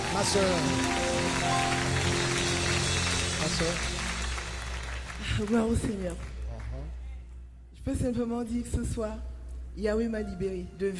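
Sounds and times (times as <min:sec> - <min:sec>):
audience applause: 0:00.0 - 0:07.0
speech: 0:00.2 - 0:01.8, 0:03.5 - 0:04.0, 0:05.3 - 0:06.3, 0:07.8 - 0:10.9.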